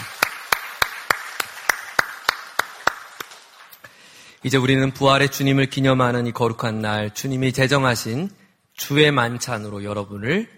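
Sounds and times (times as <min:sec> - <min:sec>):
audience clapping in praise: 0:00.0 - 0:04.1
speech: 0:04.4 - 0:10.5.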